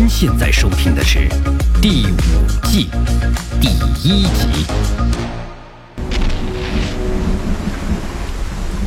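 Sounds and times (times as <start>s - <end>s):
speech: 0.2s - 5.4s
heavy rain pouring: 6.0s - 8.8s
low rumbling thunder with a sharp crack: 6.0s - 8.8s.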